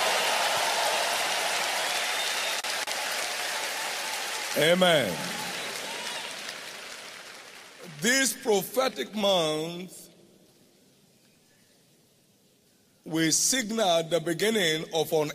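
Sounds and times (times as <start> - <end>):
audience clapping: 0.0 - 8.0
speech: 4.6 - 5.4, 8.0 - 10.0, 13.0 - 15.3.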